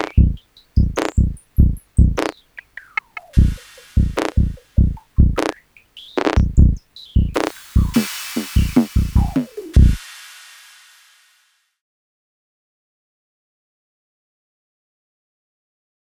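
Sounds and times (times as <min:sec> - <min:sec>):
gritty drum kit: 0:00.0 - 0:02.4, 0:03.4 - 0:11.1.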